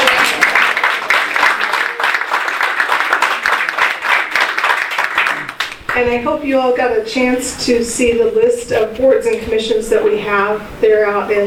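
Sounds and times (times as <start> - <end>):
short round of applause: 0.0 - 6.0
speech: 6.0 - 11.4.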